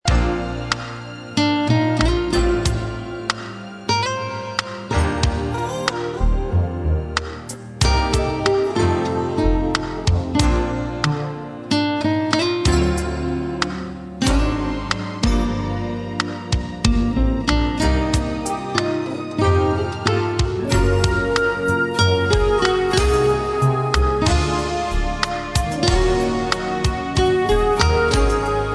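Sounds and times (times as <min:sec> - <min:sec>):
easy listening music: 0:00.0 - 0:28.7.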